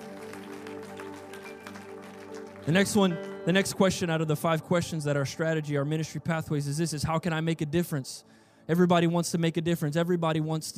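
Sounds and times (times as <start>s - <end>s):
audience clapping hands: 0.0s - 3.8s
speech: 2.6s - 10.7s.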